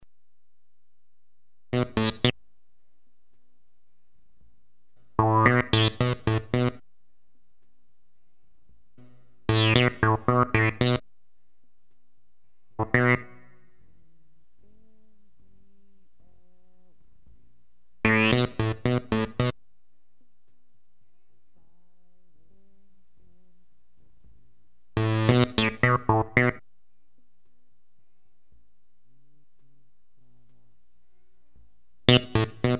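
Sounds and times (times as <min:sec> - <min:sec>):
synth: 0:01.7 - 0:02.3, 0:05.2 - 0:06.8, 0:09.5 - 0:11.0, 0:12.8 - 0:13.8, 0:18.0 - 0:19.6, 0:25.0 - 0:26.6, 0:32.1 - 0:32.7.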